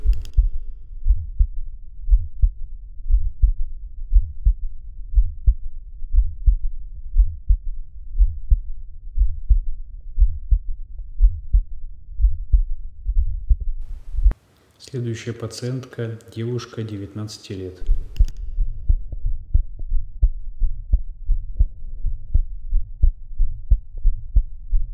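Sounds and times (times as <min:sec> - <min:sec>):
heartbeat heard through a stethoscope with third heart sound: 0:00.0 - 0:14.4, 0:17.8 - 0:24.9
speech: 0:14.9 - 0:18.0.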